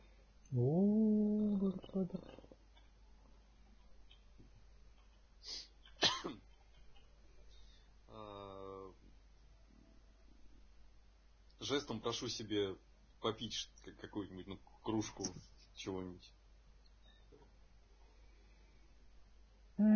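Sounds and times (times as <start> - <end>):
speech: 0.5 - 0.9, 1.7 - 2.5, 11.7 - 16.4
strained groan: 0.5 - 2.5
harsh coughing after waking up: 6.0 - 6.4.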